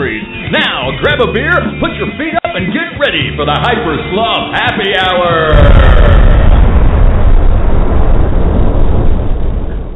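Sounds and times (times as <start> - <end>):
speech: 1.0 - 6.2
explosion sound effect: 5.5 - 9.9.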